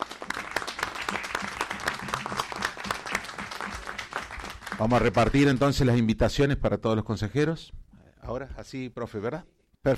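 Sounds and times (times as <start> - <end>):
audience applause: 0.0 - 5.6
speech: 4.8 - 9.9.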